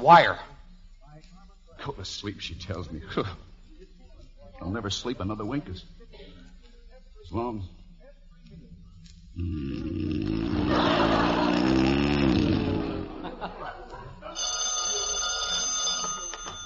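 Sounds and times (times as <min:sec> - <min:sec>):
speech: 0:00.0 - 0:00.5, 0:01.8 - 0:03.5, 0:04.6 - 0:06.3, 0:07.3 - 0:07.8, 0:09.4 - 0:11.0
laughter: 0:10.2 - 0:15.1
telephone bell ringing: 0:14.4 - 0:16.6.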